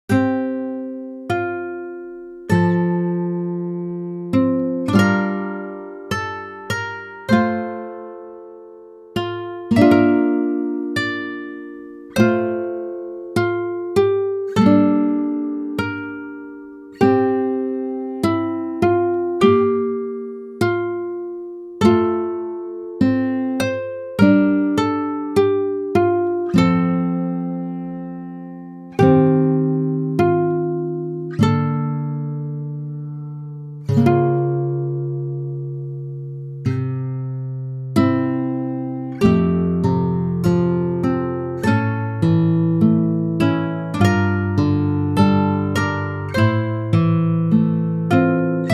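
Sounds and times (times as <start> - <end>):
guitar: 0.0 - 48.7.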